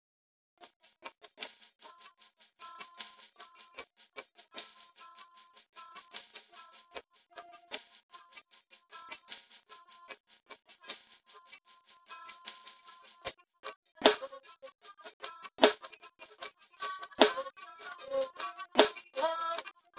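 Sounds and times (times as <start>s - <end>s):
percussion: 0.6s - 19.9s.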